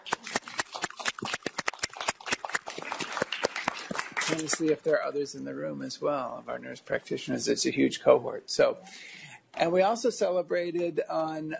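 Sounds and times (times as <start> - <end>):
clapping: 0.0 - 4.8
speech: 4.3 - 11.5.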